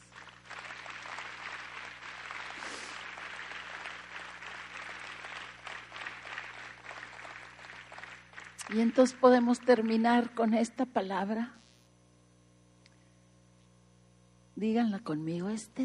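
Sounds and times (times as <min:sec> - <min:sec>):
audience applause: 0:00.0 - 0:10.3
speech: 0:08.7 - 0:11.6, 0:14.6 - 0:15.8.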